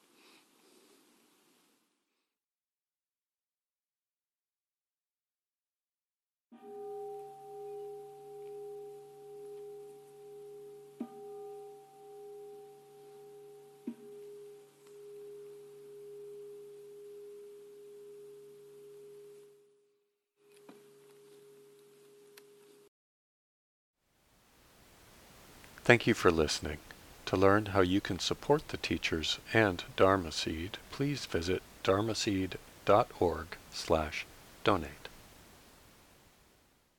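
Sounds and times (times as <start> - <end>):
meditation bell ringing: 6.6 - 19.3
speech: 25.9 - 35.0.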